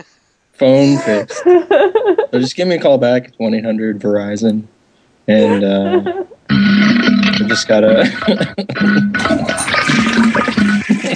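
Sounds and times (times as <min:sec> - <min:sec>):
speech: 0:00.0 - 0:04.7, 0:05.3 - 0:10.3
laughter: 0:00.6 - 0:04.6, 0:05.3 - 0:11.1
toilet flushing: 0:08.9 - 0:11.1.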